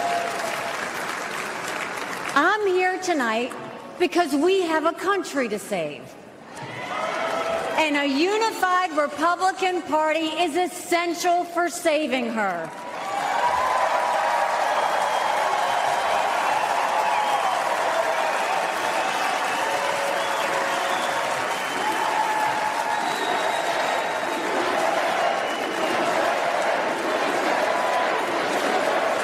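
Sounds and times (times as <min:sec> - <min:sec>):
convention crowd cheering and applauding: 0:00.0 - 0:02.4, 0:06.5 - 0:07.8, 0:12.7 - 0:29.2
speech: 0:02.4 - 0:06.7, 0:07.8 - 0:12.8
crowd whistles: 0:18.8 - 0:24.3, 0:25.3 - 0:26.0.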